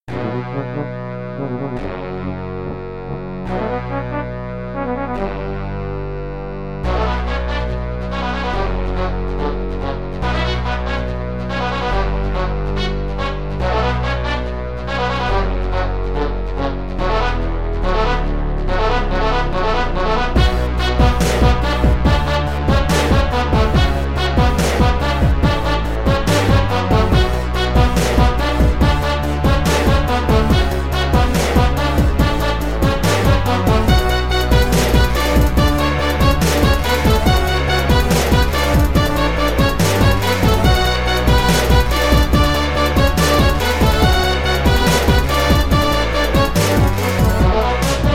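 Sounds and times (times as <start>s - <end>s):
brass instruments: 0.0s - 48.1s.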